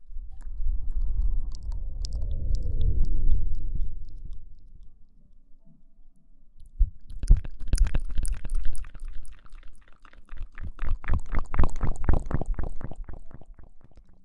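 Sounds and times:
low swelling rumble: 0.0s - 5.2s
wet mouth clicks and smacks: 0.4s - 4.9s, 6.6s - 14.2s.

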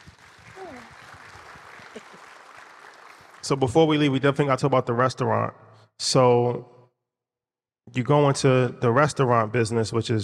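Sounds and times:
audience clapping: 0.0s - 4.2s
speech: 3.5s - 6.7s, 7.9s - 10.2s.

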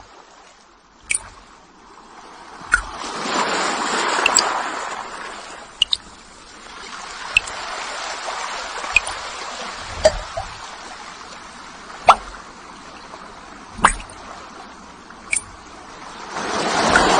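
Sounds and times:
falling water drops ticking: 1.0s - 1.4s, 2.6s - 3.0s, 4.2s - 4.5s, 5.8s - 6.2s, 7.3s - 7.6s, 8.9s - 9.2s, 10.0s - 10.6s, 12.0s - 13.2s, 13.8s - 14.2s, 15.2s - 15.7s
soft hissing wash of water: 2.3s - 17.1s.

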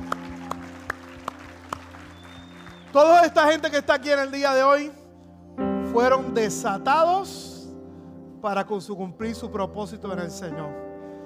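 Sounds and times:
audience applause: 0.0s - 3.8s
speech: 2.9s - 5.0s, 6.0s - 7.5s, 8.4s - 10.8s.

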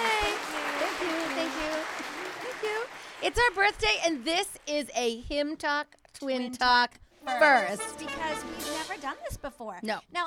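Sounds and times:
applause: 0.0s - 4.9s
speech: 3.2s - 10.2s.

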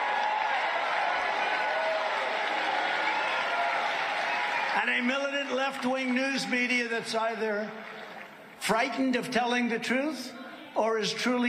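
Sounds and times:
crowd cheering and applauding: 0.0s - 8.6s
speech: 4.8s - 8.0s, 8.6s - 11.4s.

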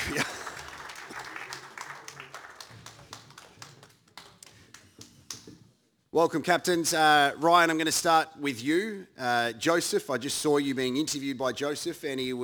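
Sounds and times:
audience clapping: 0.0s - 5.5s
speech: 6.2s - 12.4s.

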